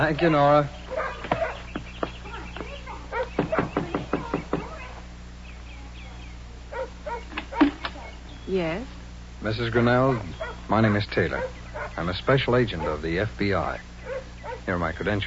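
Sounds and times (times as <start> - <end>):
speech: 0.0 - 0.8, 8.5 - 13.9, 14.6 - 15.2
sharp knocking on a door: 1.2 - 4.8.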